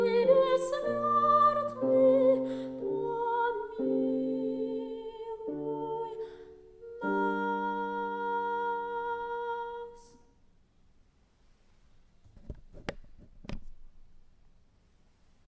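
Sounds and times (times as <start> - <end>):
soprano singing: 0.0 - 10.4.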